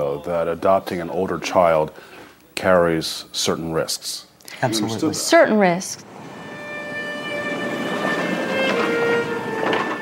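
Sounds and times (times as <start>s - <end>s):
speech: 0.2s - 6.1s
train rolling on rails: 6.0s - 9.9s
brief rattling clatters: 7.2s - 9.9s.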